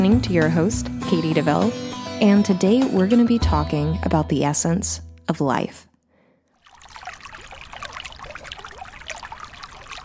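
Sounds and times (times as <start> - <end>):
speech: 0.0 - 5.9
water trickling and bubbling: 6.6 - 10.0.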